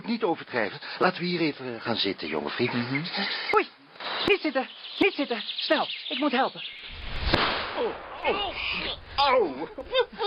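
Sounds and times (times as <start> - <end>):
speech: 0.1 - 7.0, 7.8 - 10.2
firecracker bangs: 7.0 - 8.4.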